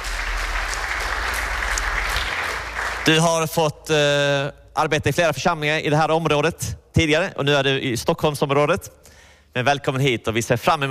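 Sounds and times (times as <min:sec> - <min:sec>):
audience applause: 0:00.0 - 0:03.4
speech: 0:03.1 - 0:10.8.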